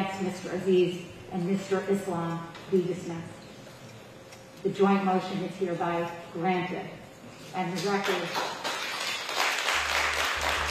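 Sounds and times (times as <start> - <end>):
low steady hum: 0.0 - 8.9, 9.6 - 10.6
speech: 0.3 - 3.4, 4.6 - 8.6
applause in a courtroom: 7.8 - 10.6.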